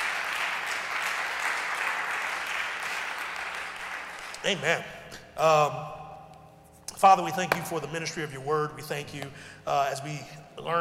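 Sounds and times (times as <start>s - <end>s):
audience hand clap of praise: 0.0s - 4.6s
speech: 4.4s - 6.0s, 7.0s - 10.8s.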